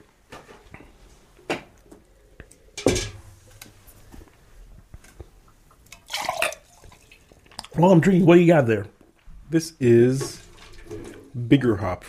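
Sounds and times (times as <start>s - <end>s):
water rinsing glasses into a dump bucket: 5.7s - 7.8s, 9.9s - 11.5s
speech: 7.8s - 10.4s, 11.4s - 12.0s.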